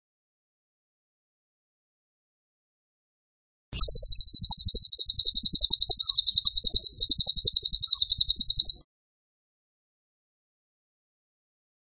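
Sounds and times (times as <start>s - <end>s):
bird song with high piercing chirps: 3.8s - 8.8s.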